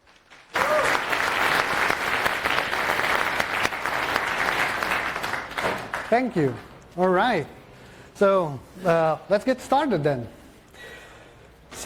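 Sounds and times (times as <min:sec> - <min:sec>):
audience applause: 0:00.0 - 0:06.2
speech: 0:06.1 - 0:07.6, 0:08.2 - 0:10.9.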